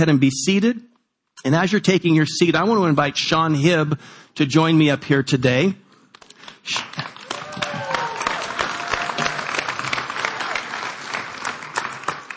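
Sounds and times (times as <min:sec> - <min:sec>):
speech: 0:00.0 - 0:05.8, 0:06.6 - 0:07.0
audience clapping: 0:06.4 - 0:12.3.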